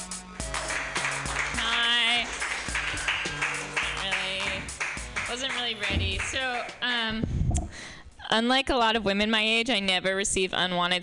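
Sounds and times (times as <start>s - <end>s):
loud tonal music: 0.0s - 6.8s
audience applause: 0.4s - 6.8s
speech: 5.4s - 7.4s, 8.3s - 11.0s.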